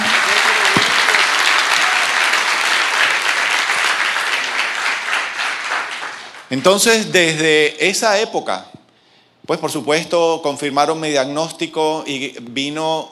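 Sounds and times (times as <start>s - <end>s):
crowd clapping: 0.0s - 7.1s
speech: 6.5s - 8.7s, 9.5s - 13.0s.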